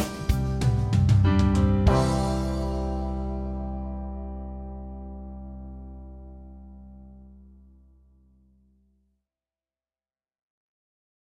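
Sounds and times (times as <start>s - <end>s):
chord progression: 0.0s - 8.4s.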